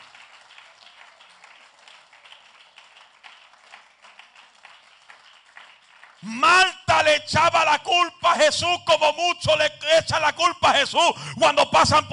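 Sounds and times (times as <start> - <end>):
audience clapping: 0.0 - 6.8
speech: 6.2 - 12.1.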